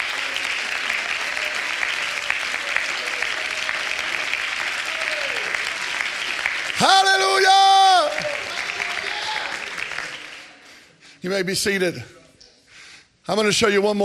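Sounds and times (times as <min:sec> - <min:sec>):
audience clapping hands: 0:00.0 - 0:10.9
speech: 0:06.8 - 0:07.6, 0:11.2 - 0:12.2, 0:13.3 - 0:14.0.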